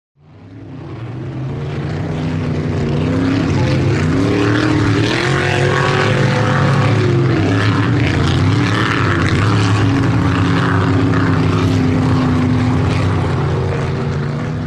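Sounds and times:
offshore power boats speeding: 0.2s - 14.6s.

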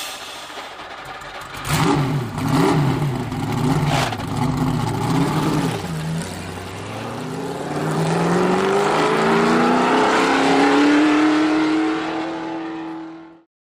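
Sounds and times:
sports car starting and driving away: 0.9s - 13.4s.

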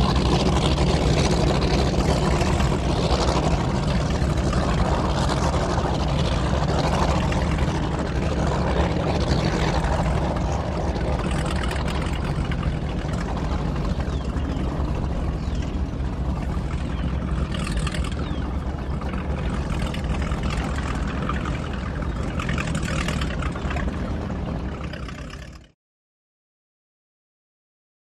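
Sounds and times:
offshore power boats: 0.0s - 25.8s
bird: 13.4s - 23.5s.

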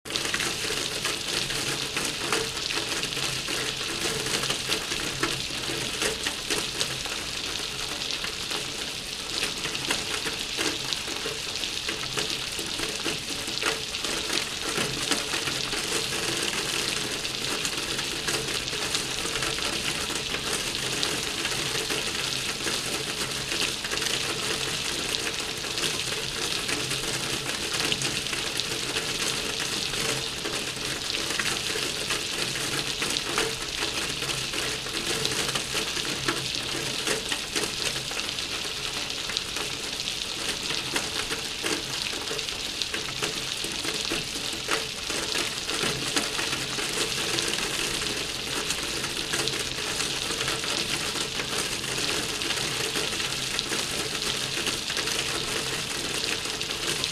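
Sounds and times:
medium rain off roof hitting cement: 0.0s - 57.1s.

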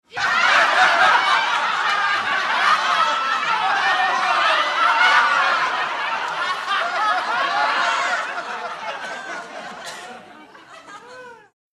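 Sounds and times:
medium crowd bursting into laughter: 0.2s - 11.5s.

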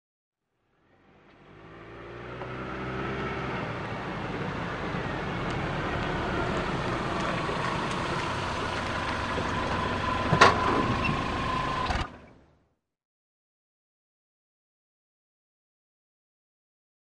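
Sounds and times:
compact car manoeuvring in a park: 0.8s - 12.5s.

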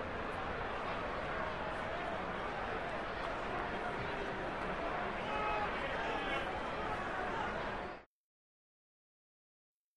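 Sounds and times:
sports arena crowd oohing and cheering: 0.0s - 8.1s.

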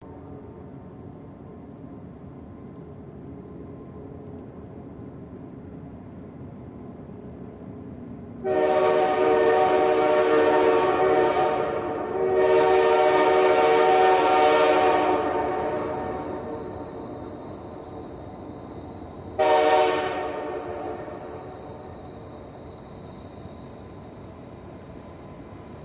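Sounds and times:
fast train passing by: 0.0s - 25.8s
train horn: 8.4s - 17.4s, 19.3s - 21.9s.

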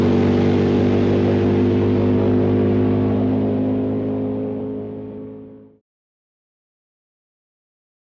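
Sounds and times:
drag boat engine starting and revving: 0.0s - 5.8s.

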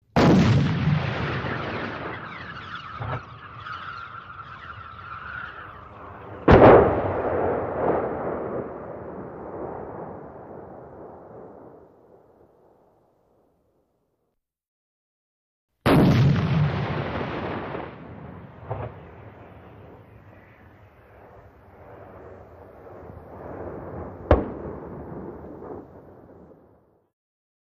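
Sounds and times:
105mm howitzer firing projectile: 0.1s - 3.3s, 6.4s - 9.5s, 15.9s - 26.4s
downrange explosion: 0.1s - 13.0s, 15.9s - 27.0s.

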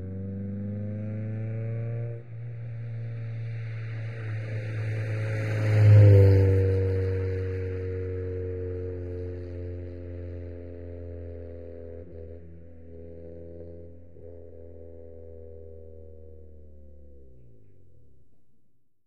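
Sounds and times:
Acura Integra approaching quickly, passing and decelerating away: 0.1s - 10.2s.

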